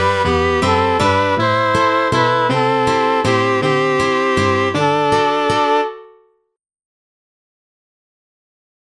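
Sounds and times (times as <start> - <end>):
waltz music: 0.0 - 6.3.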